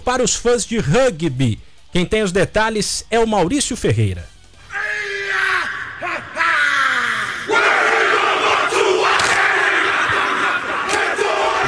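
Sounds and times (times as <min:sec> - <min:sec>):
speech: 0:00.1 - 0:04.3
stadium crowd roaring: 0:04.7 - 0:11.6.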